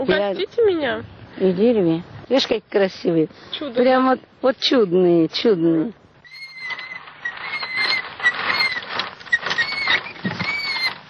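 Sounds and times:
speech: 0:00.0 - 0:06.0
squeaking of an unoiled child's tricycle: 0:04.7 - 0:11.0.

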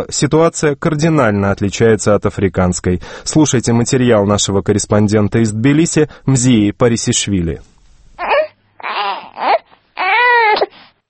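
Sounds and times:
speech: 0:00.0 - 0:07.7
newborn baby crying: 0:08.2 - 0:10.8.

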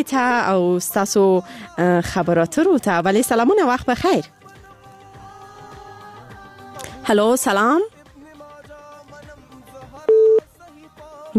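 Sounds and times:
speech: 0:00.0 - 0:04.4, 0:07.1 - 0:08.0
telephone busy tone after a dropped call: 0:10.1 - 0:10.5.

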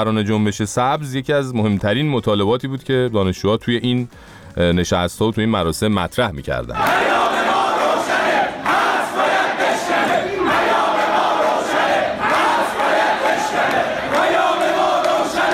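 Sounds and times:
speech: 0:00.0 - 0:07.1
crowd chanting protest slogans: 0:06.8 - 0:15.5.

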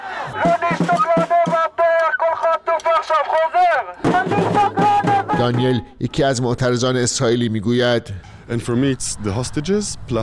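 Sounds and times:
protest crowd shouting at a demonstration in Jerusalem: 0:00.0 - 0:05.9
speech: 0:05.4 - 0:10.2.

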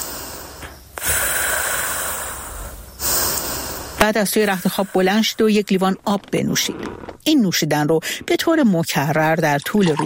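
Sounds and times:
slow deep breathing: 0:00.0 - 0:05.3
speech: 0:04.0 - 0:10.0.

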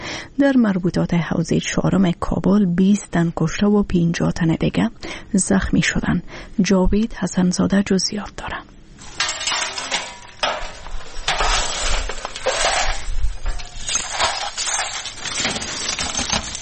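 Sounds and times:
speech: 0:00.4 - 0:08.7
broken glass and household debris being collected in Kabul: 0:09.0 - 0:16.6.

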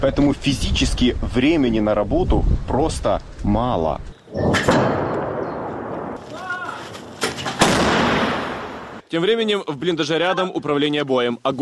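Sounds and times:
speech: 0:00.0 - 0:05.0, 0:09.1 - 0:11.5
artillery gun firing: 0:04.5 - 0:06.2, 0:07.2 - 0:09.0.

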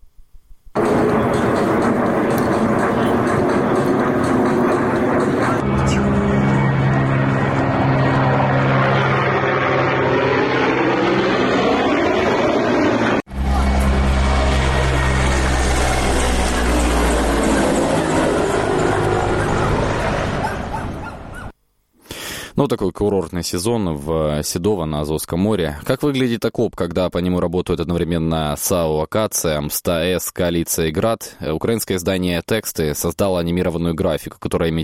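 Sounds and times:
military aircraft flying overhead: 0:00.8 - 0:21.5
speech: 0:22.7 - 0:34.8.

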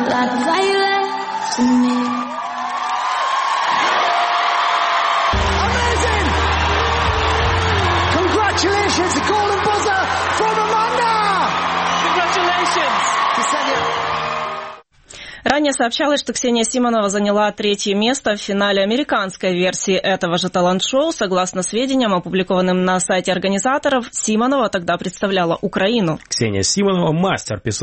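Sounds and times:
talent show audience cheering and whooping: 0:00.1 - 0:14.9
speech: 0:15.6 - 0:27.8.

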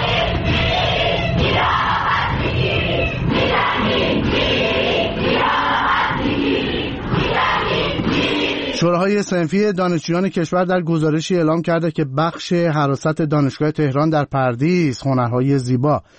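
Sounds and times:
protesting students chanting: 0:00.0 - 0:09.0
speech: 0:09.0 - 0:16.1.

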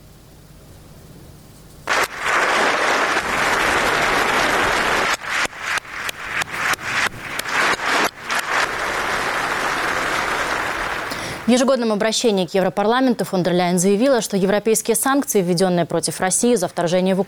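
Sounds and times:
standing ovation applause in parliament: 0:01.9 - 0:11.5
speech: 0:11.5 - 0:17.2.

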